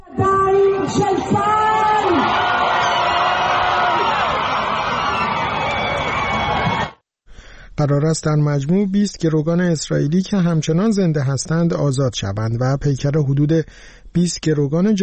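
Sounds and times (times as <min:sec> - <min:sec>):
crowd of families shouting with joy: 0:00.8 - 0:07.0
speech: 0:00.9 - 0:01.6, 0:07.8 - 0:15.0.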